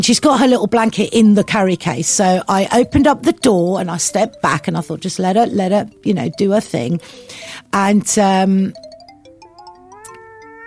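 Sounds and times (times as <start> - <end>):
speech: 0.0 - 8.9
cat meowing to be let out: 9.5 - 10.6.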